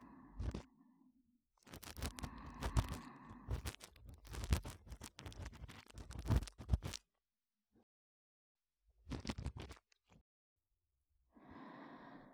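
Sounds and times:
ASMR ear cleaning of the left ear: 0:01.6 - 0:07.0.

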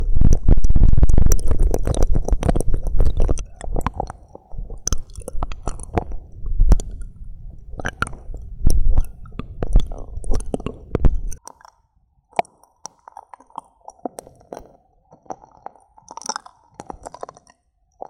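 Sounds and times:
left ear deep ear-licking massage ASMR: 0:00.0 - 0:11.4.

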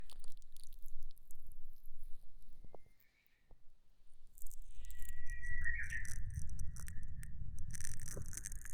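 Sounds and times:
spring morning ambient sound: 0:04.2 - 0:08.7.

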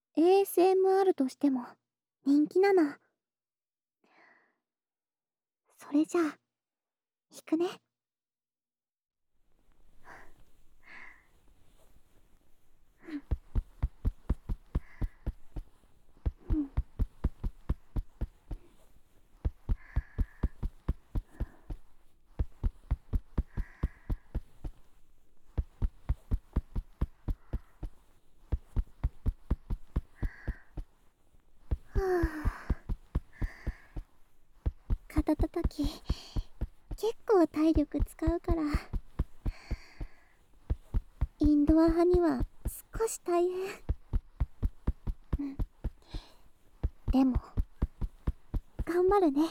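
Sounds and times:
speech: 0:00.2 - 0:03.0, 0:05.8 - 0:06.4, 0:07.3 - 0:07.8, 0:32.0 - 0:32.6, 0:35.3 - 0:36.4, 0:37.0 - 0:38.9, 0:41.4 - 0:43.9, 0:45.4 - 0:46.2, 0:47.1 - 0:47.5, 0:48.9 - 0:49.4
soft breathy sounds: 0:12.9 - 0:31.0, 0:31.6 - 0:37.4, 0:38.2 - 0:42.8, 0:43.5 - 0:49.4
rhythmic shoulder tapping: 0:13.0 - 0:49.4.

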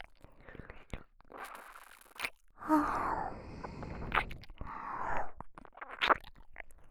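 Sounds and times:
ear licking on the left: 0:01.4 - 0:06.3.

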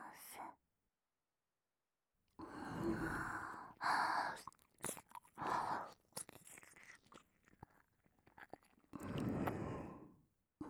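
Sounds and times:
ear licking: 0:02.5 - 0:10.0.

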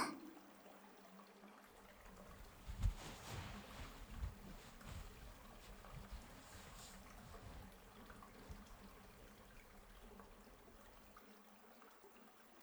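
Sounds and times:
ear licking during a foot bath: 0:02.0 - 0:10.5.

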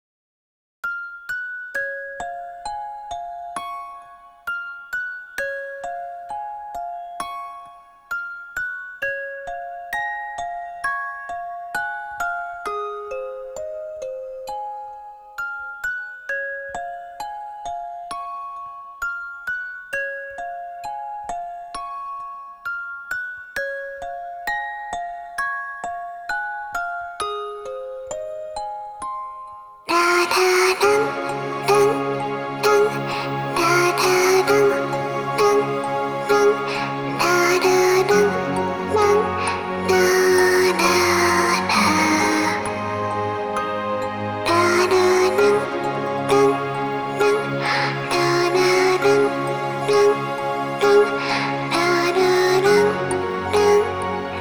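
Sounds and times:
lullaby arrangement: 0:00.8 - 0:54.3.

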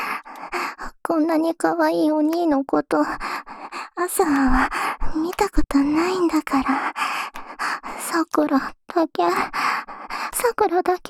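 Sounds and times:
heavy panting breaths: 0:00.0 - 0:00.9, 0:03.1 - 0:05.2, 0:05.9 - 0:08.1, 0:09.4 - 0:10.5
speech: 0:01.1 - 0:03.4, 0:04.0 - 0:07.0, 0:08.2 - 0:09.7, 0:10.4 - 0:11.0.

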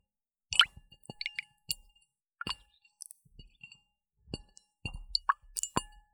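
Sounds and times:
water sounds: 0:00.5 - 0:01.5, 0:05.2 - 0:05.8.

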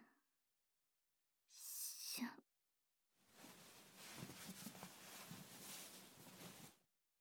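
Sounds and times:
ear cleaning on a lap pillow reversed: 0:03.4 - 0:06.7.

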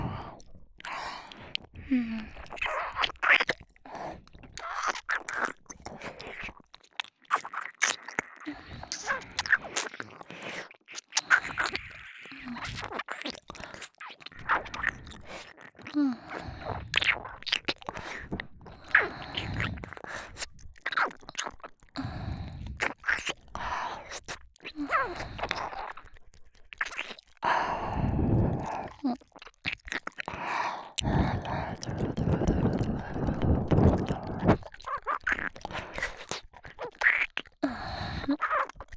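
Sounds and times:
succubus older-sister woman's erotic voice: 0:00.0 - 0:05.1, 0:08.2 - 0:09.8, 0:11.3 - 0:13.0, 0:14.3 - 0:20.5, 0:21.9 - 0:26.2, 0:26.9 - 0:38.9
ear licking: 0:00.1 - 0:38.9.

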